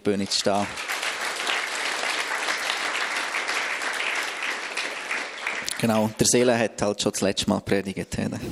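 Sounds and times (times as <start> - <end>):
speech: 0.0 - 1.0, 5.8 - 8.4
audience applause: 0.2 - 6.2.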